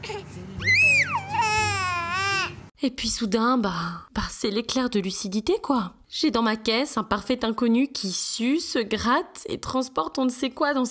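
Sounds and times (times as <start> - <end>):
young child crying: 0.0 - 2.6
speech: 2.8 - 10.8.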